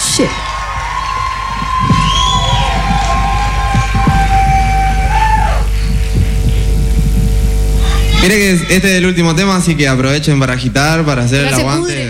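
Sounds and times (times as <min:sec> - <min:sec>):
crowd applauding and cheering: 0:00.0 - 0:08.4
speech: 0:00.2 - 0:00.6, 0:08.2 - 0:12.0
long whistles: 0:00.4 - 0:05.7.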